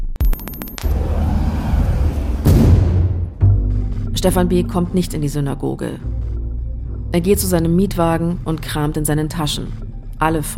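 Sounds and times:
homemade explosive device detonating: 0.8s - 3.8s
speech: 4.2s - 6.2s, 7.1s - 10.5s.

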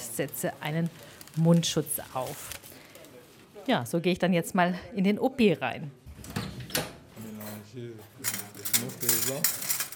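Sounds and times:
speech: 0.2s - 2.6s, 3.7s - 6.4s, 7.7s - 9.7s
surgical clamps and scissors clinking and rattling: 8.2s - 9.9s.

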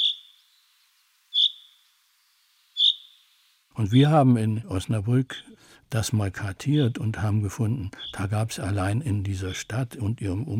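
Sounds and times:
common chaffinch rain calls: 0.0s - 0.5s, 1.3s - 1.8s, 2.8s - 3.2s, 7.9s - 8.3s
speech: 3.8s - 10.5s.

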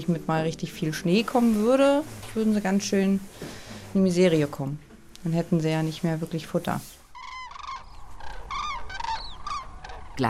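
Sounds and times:
speech: 0.0s - 7.0s
common cranes trumpeting at sunrise: 7.0s - 10.2s.

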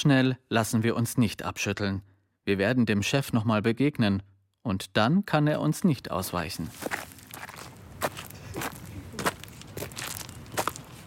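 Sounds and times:
speech: 0.0s - 7.1s
footsteps walking along a path between greenhouses: 6.5s - 11.0s.

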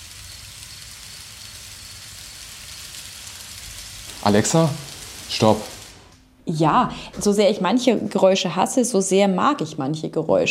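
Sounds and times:
recorded rain: 0.0s - 6.3s
speech: 4.2s - 5.7s, 6.5s - 10.4s.

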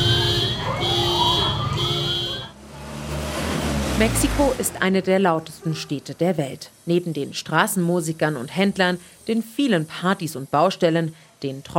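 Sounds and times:
earthquake warning siren: 0.0s - 2.8s
low traffic-like rumble: 0.0s - 6.3s
speech: 4.0s - 11.7s.

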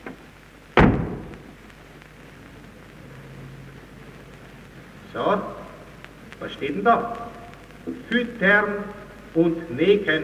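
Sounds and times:
door slammed shut: 0.8s - 1.4s
speech: 5.2s - 5.6s, 6.4s - 7.2s, 7.9s - 10.2s.

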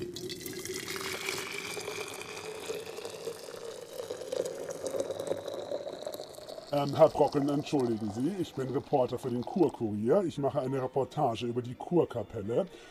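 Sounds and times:
hot onion tea pouring: 0.0s - 10.3s
speech: 6.7s - 12.8s.

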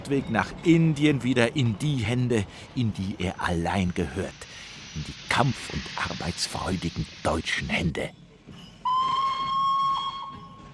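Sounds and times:
soft hiss: 0.0s - 8.8s
speech: 0.1s - 8.2s
steam locomotive whistle: 8.8s - 10.7s.

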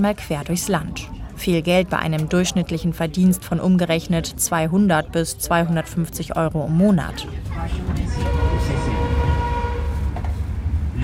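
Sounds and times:
speech: 0.0s - 8.9s
train pulling into a station in Luang Prabang: 7.4s - 11.0s.

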